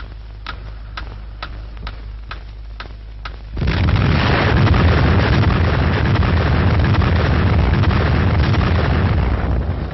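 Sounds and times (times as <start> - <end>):
evenly spaced ticks: 0.0 - 3.5
first French atomic bomb test explosion in the Algerian Sahara: 3.6 - 9.9.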